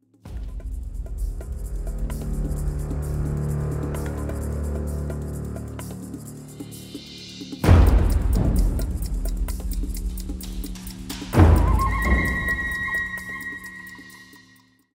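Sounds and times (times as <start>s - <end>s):
tribal music: 0.2s - 14.7s.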